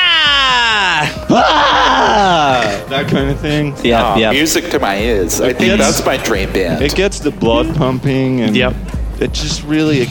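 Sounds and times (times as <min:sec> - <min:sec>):
person imitating a primal scream: 0:00.0 - 0:02.8
speech: 0:03.0 - 0:10.0.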